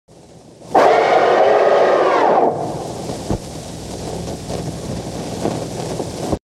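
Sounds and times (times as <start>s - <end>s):
scary sound: 0.7s - 3.1s.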